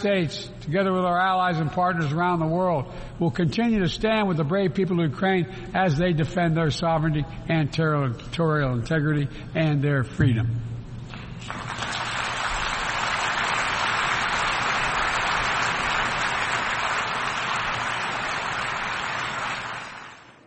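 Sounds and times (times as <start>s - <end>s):
speech: 0.0s - 10.7s
audience applauding: 11.2s - 20.4s.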